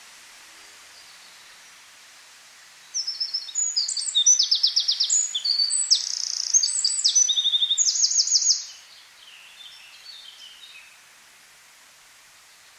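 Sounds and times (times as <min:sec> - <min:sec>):
Eurasian wren song: 0:02.8 - 0:11.0.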